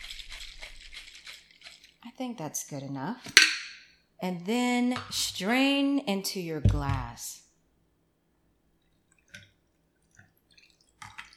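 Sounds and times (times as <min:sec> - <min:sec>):
cocktail shaker being shaken: 0:00.0 - 0:01.9
speech: 0:02.1 - 0:03.6, 0:04.2 - 0:07.4.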